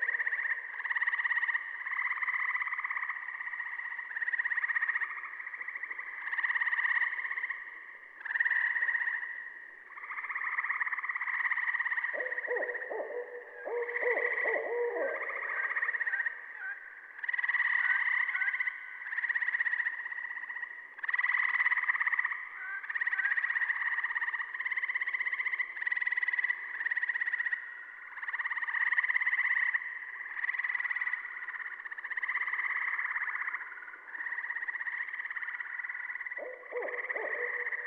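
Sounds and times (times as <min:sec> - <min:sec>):
Gray Treefrog calling: 0:00.0 - 0:37.8
Saw-whet Owl calling: 0:12.0 - 0:17.5, 0:36.3 - 0:37.8
Barred Owl hooting: 0:12.1 - 0:16.2, 0:36.4 - 0:37.8.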